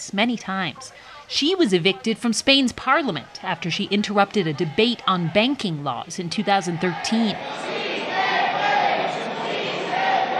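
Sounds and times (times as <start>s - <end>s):
speech: 0.0s - 7.8s
crowd shouting protest chant in parliament gallery: 4.2s - 10.3s.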